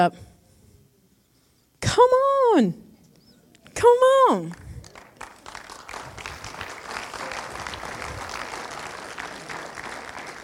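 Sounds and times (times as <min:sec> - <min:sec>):
speech: 0:00.0 - 0:00.3, 0:01.8 - 0:02.8, 0:03.8 - 0:04.6
audience clapping: 0:04.5 - 0:10.4.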